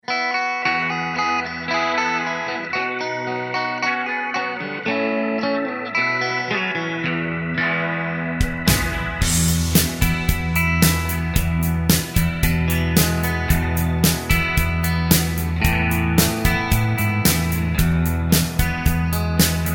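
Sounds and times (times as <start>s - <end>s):
music without backing vocals: 0.0s - 19.7s.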